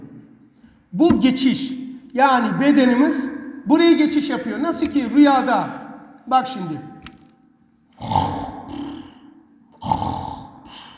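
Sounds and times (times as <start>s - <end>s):
speech: 0.9s - 6.9s, 8.0s - 8.2s
person imitating snoring: 8.0s - 10.9s.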